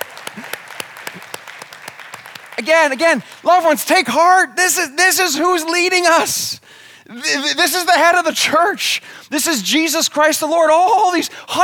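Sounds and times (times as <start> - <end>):
church congregation applause: 0.0 - 4.9
speech: 2.6 - 11.6.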